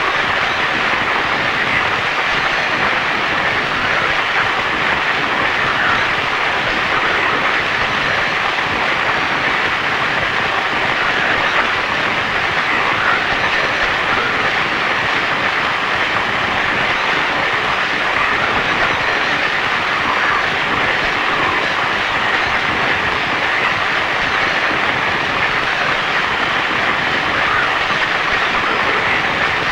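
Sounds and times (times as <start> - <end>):
ambient static noise loop: 0.0 - 29.7.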